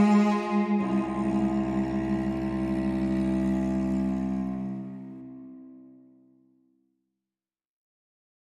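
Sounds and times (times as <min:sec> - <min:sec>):
lead cello only: 0:00.0 - 0:06.0.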